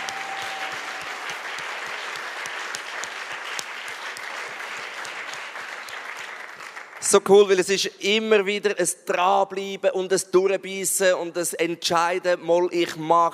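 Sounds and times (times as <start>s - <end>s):
audience applause: 0.0s - 7.1s
speech: 7.1s - 13.3s.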